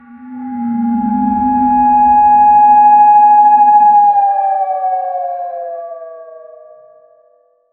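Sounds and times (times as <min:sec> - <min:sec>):
post apocalyptic siren: 0:00.0 - 0:06.0.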